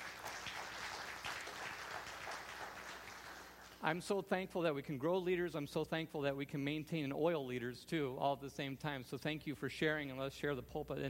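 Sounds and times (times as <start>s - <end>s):
crowd applause: 0.0s - 3.9s
speech: 3.8s - 11.0s.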